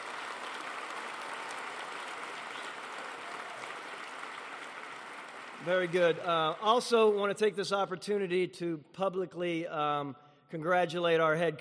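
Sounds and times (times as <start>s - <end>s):
audience applause: 0.0s - 7.3s
speech: 5.6s - 11.5s.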